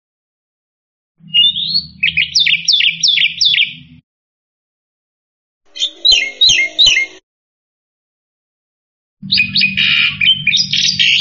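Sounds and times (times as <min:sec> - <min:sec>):
black-winged myna chirping: 0:01.2 - 0:04.0, 0:05.7 - 0:07.2, 0:09.2 - 0:11.1.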